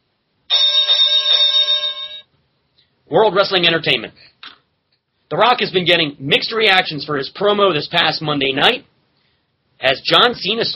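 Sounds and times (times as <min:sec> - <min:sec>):
bell ringing: 0:00.5 - 0:02.3
speech: 0:03.1 - 0:04.6, 0:05.3 - 0:08.9, 0:09.8 - 0:10.7.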